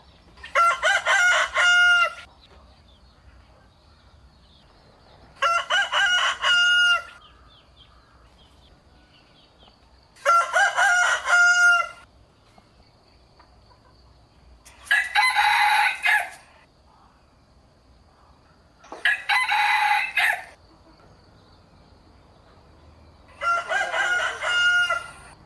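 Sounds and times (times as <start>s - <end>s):
rooster crowing: 0.4s - 2.3s, 5.4s - 7.3s, 10.2s - 12.1s, 14.9s - 16.4s, 19.0s - 20.6s, 23.3s - 25.4s.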